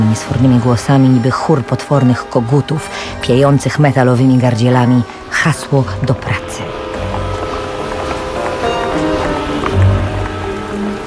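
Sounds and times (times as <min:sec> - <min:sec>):
speech: 0:00.1 - 0:06.8
March rain mixed with snow drumming on tin roofs in a town: 0:06.6 - 0:11.0.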